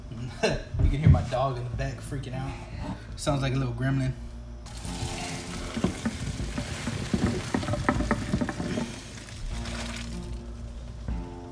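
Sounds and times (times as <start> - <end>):
speech: 0.4 - 5.0
pasta water poured into sink strainer: 4.7 - 10.4.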